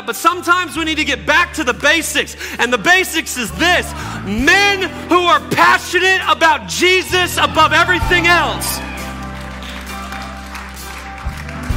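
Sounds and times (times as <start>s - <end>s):
speech: 0.0s - 9.0s
women in audience clapping: 8.2s - 11.7s.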